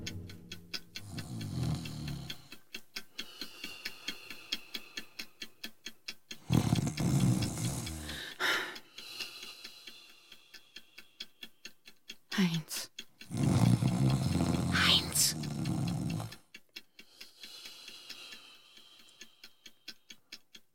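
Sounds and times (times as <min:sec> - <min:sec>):
loud snoring: 0:01.0 - 0:02.5, 0:06.5 - 0:08.4, 0:13.3 - 0:16.5.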